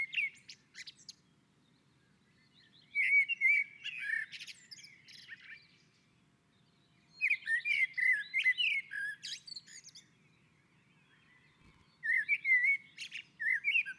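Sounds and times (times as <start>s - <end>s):
common blackbird song: 0.0s - 13.9s.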